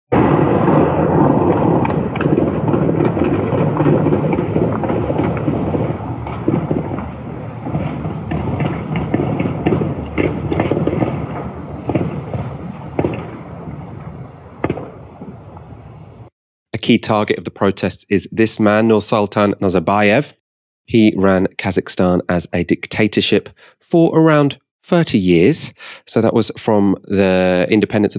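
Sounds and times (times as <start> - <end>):
widespread gunfire and shelling: 0.2 - 15.4
speech: 16.9 - 28.1.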